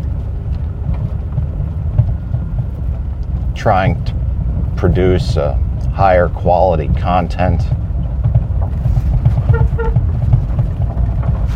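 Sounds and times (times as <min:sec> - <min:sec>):
engine and road noise rumble: 0:00.0 - 0:11.5
speech: 0:03.6 - 0:04.2, 0:04.8 - 0:07.8
car horn beeps: 0:09.5 - 0:10.0.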